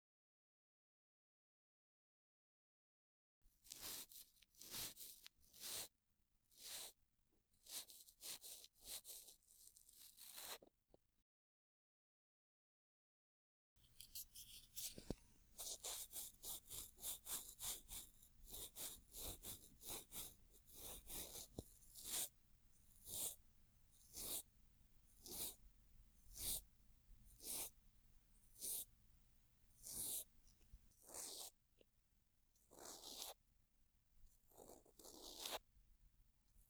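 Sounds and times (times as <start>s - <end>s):
cotton swab brushing ear rim and earlobe on left side: 3.7s - 5.9s, 6.6s - 7.0s, 7.6s - 10.7s, 14.0s - 23.4s, 24.0s - 24.5s, 25.2s - 25.6s, 26.2s - 26.7s, 27.3s - 27.7s, 28.6s - 28.9s, 29.8s - 30.3s, 31.0s - 31.5s, 32.8s - 33.4s, 34.6s - 35.6s.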